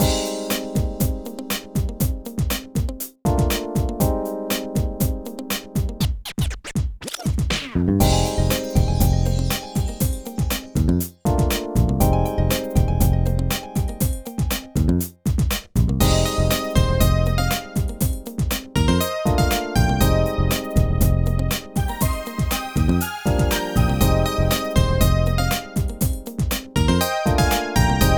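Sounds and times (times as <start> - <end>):
hip-hop music: 0.0 - 15.3, 16.0 - 28.1.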